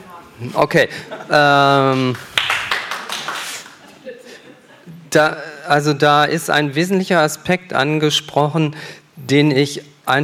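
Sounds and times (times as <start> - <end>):
speech: 0.4 - 2.3, 5.1 - 10.2
audience applause: 1.9 - 3.8.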